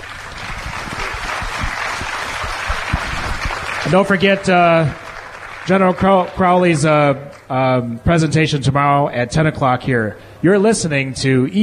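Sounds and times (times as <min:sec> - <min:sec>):
crowd applauding: 0:00.0 - 0:07.5
speech: 0:03.8 - 0:05.0, 0:05.6 - 0:11.6.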